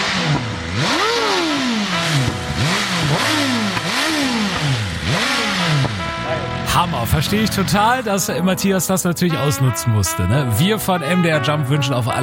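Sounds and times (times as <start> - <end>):
motorcycle engine revving: 0.0 - 8.4
speech: 7.0 - 12.2.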